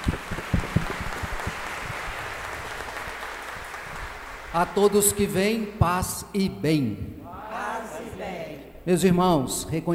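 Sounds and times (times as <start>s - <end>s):
audience applauding: 0.0s - 4.8s
speech: 4.5s - 7.2s, 8.8s - 9.9s.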